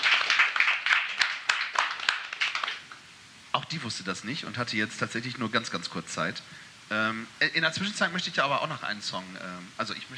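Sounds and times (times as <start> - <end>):
audience applause: 0.0 - 2.9
sharp individual claps: 0.0 - 3.0
speech: 3.7 - 10.1.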